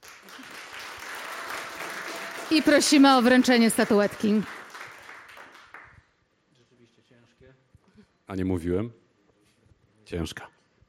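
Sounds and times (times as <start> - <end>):
audience applause at a book award ceremony: 0.0 - 6.0
speech: 2.5 - 4.6, 8.4 - 9.0, 10.1 - 10.6.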